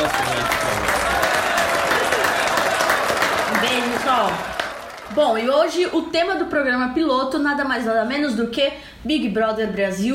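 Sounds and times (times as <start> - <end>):
crowd applause: 0.0 - 5.8
speech: 5.1 - 10.1.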